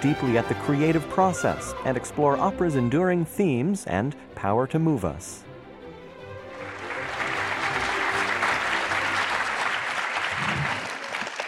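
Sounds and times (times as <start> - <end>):
speech: 0.0 - 5.5
audience applause welcoming Christoph Waltz at an LA Opera event: 6.4 - 11.4.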